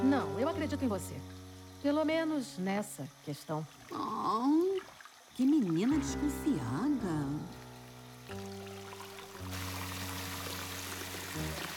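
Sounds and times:
speech: 0.1 - 4.7, 5.4 - 7.6
warm water pouring into a bubble bath: 3.6 - 5.9, 7.3 - 11.7.

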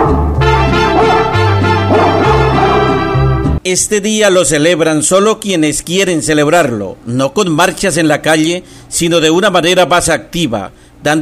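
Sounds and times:
dog barking and yipping: 0.0 - 3.2
steady low music tones: 0.0 - 3.6
speech: 3.6 - 11.1.

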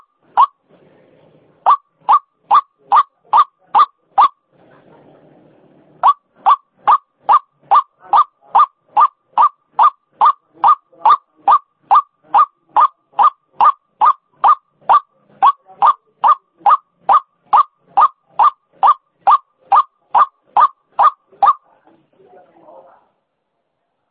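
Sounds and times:
white-breasted waterhen rasping calls: 0.0 - 0.6, 1.6 - 4.4, 6.0 - 21.7.

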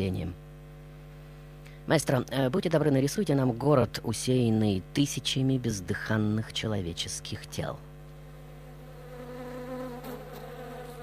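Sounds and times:
speech: 0.0 - 0.4, 1.9 - 7.9
swarm of flies buzzing: 8.1 - 11.0.

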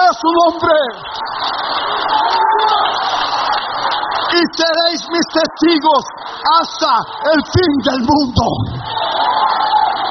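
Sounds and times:
audience applauding: 0.0 - 10.0
speech: 0.1 - 1.5, 4.4 - 9.4.

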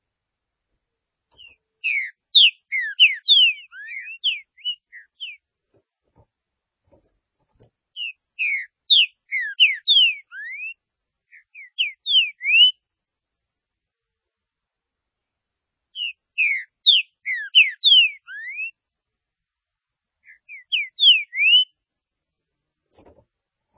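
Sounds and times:
green-winged saltator singing whistled phrases: 1.4 - 5.4, 8.0 - 12.8, 16.0 - 18.8, 20.2 - 21.8.

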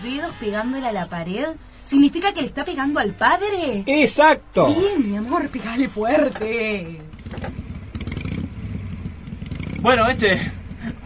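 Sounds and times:
speech: 0.0 - 7.4, 9.8 - 11.0
motorcycle engine revving: 7.0 - 11.0.

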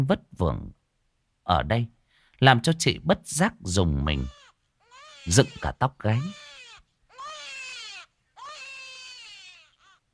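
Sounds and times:
speech: 0.0 - 0.8, 1.5 - 4.4, 5.2 - 6.5
baby crying by a deserted cold riverbank: 4.2 - 10.1.

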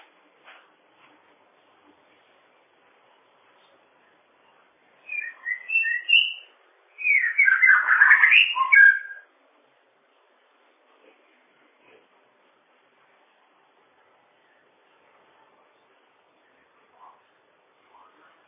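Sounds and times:
bird song: 5.0 - 9.3.

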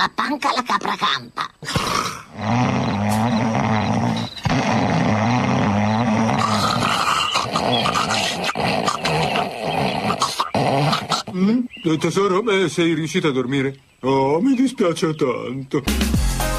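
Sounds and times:
speech: 0.0 - 2.9, 11.8 - 16.5
loud snoring: 1.6 - 11.5.

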